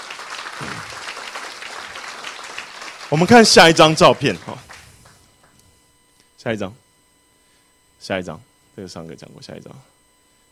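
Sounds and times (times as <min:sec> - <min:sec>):
crowd clapping: 0:00.0 - 0:05.6
speech: 0:00.6 - 0:01.0, 0:03.1 - 0:04.7, 0:06.4 - 0:06.8, 0:08.0 - 0:10.0.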